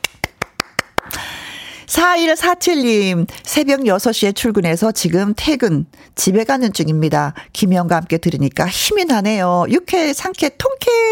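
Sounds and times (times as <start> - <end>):
applause: 0.0 - 1.2
speech: 1.9 - 11.0.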